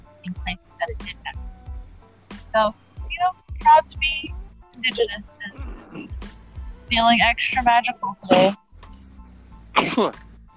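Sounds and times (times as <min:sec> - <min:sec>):
speech: 0:02.6 - 0:05.3, 0:06.9 - 0:08.6, 0:10.0 - 0:10.3
sneeze: 0:08.3 - 0:08.6, 0:09.8 - 0:10.1.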